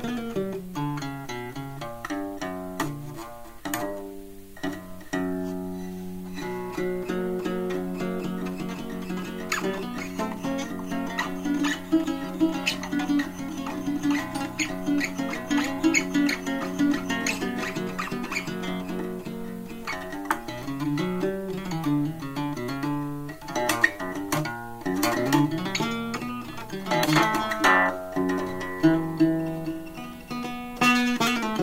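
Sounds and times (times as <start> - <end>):
blue guitar Spanish house music: 0.0 - 31.6.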